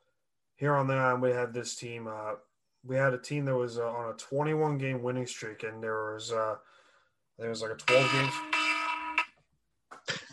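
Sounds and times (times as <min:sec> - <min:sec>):
speech: 0:00.6 - 0:06.8, 0:07.4 - 0:08.5
phone alarm going off: 0:07.9 - 0:09.3.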